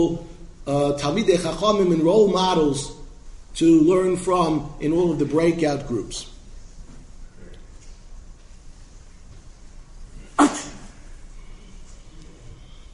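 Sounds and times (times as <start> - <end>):
speech: 0.0 - 3.0, 3.6 - 6.3
quiet hiss: 0.0 - 12.9
person fake sneezing: 10.4 - 10.9.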